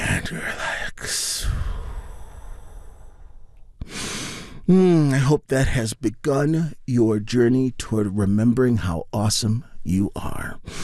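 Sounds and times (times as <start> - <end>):
speech: 0.3 - 1.2, 4.7 - 10.8
deep relaxation breath in and out: 1.0 - 4.7, 10.6 - 10.8.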